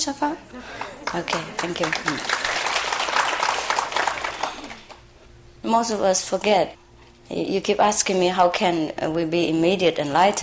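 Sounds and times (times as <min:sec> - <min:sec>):
speech: 0:00.0 - 0:02.6, 0:05.6 - 0:10.4
audience applause: 0:00.8 - 0:05.0.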